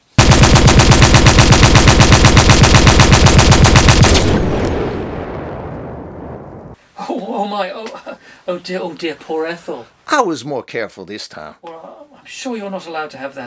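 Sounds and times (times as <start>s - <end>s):
automatic weapon gunfire: 0.2s - 5.0s
speech: 7.5s - 13.4s.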